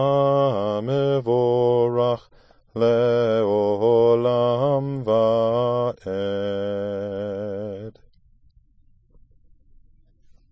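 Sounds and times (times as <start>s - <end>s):
person singing a prayer: 0.0s - 7.9s.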